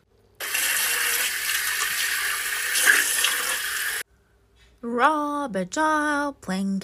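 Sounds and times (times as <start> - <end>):
hands being washed with soap in a sink: 0.4 - 4.0
tap water rushing in a steady stream: 0.4 - 4.0
speech: 4.8 - 6.8.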